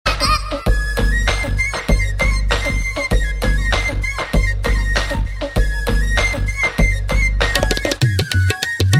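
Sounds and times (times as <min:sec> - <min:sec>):
flute: 0:00.2 - 0:08.9.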